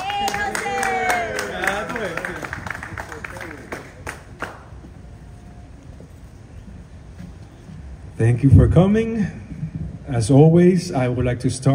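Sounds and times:
audience applause: 0.0s - 4.9s
speech: 8.2s - 9.4s, 10.1s - 11.7s.

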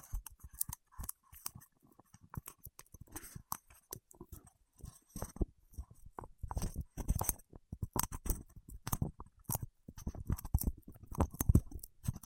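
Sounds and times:
fingertips working soft wax: 0.0s - 12.2s.

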